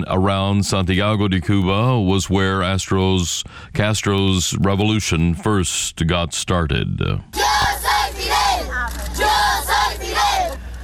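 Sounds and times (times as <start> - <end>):
speech: 0.0 - 8.2
children shouting slogan in street: 7.4 - 10.6.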